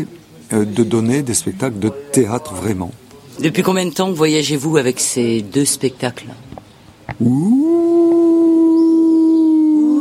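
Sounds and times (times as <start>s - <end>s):
speech: 0.0s - 6.6s, 7.2s - 8.1s
wolf howling: 7.2s - 10.0s.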